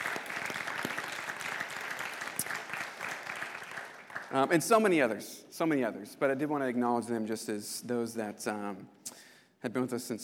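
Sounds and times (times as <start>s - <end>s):
audience applause: 0.0s - 4.5s
speech: 4.3s - 9.0s, 9.6s - 10.2s.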